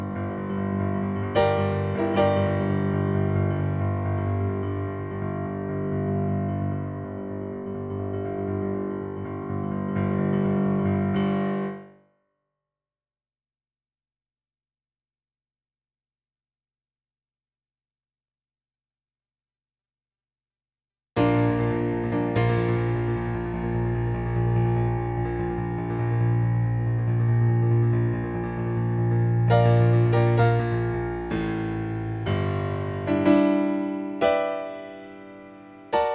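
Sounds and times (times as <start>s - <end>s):
piano: 0.0s - 12.1s, 21.2s - 36.1s.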